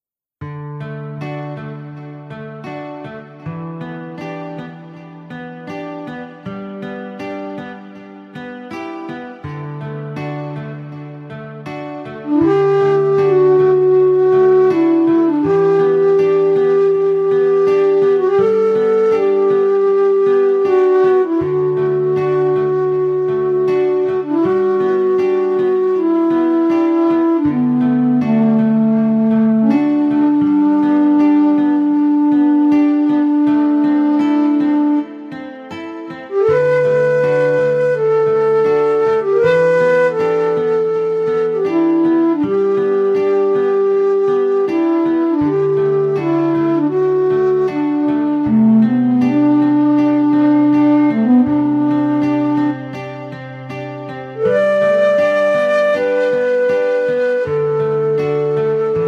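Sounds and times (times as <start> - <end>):
yoga music: 0.6 - 59.0.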